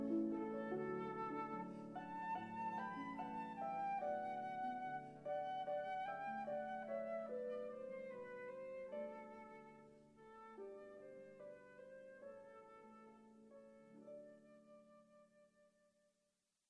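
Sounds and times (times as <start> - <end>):
harp playing: 0.0 - 10.5.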